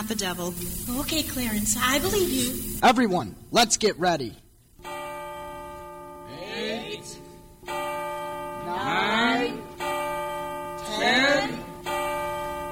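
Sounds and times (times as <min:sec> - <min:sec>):
speech: 0:00.1 - 0:04.4
tower clock bell striking eleven: 0:04.8 - 0:12.7.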